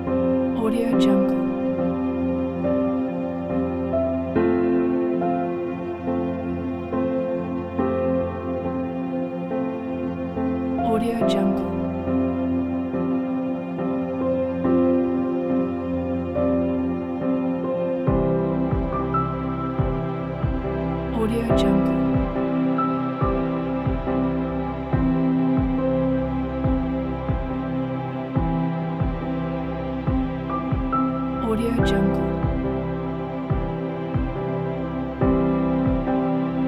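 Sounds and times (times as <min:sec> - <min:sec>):
nature ambience music: 0:00.0 - 0:36.6.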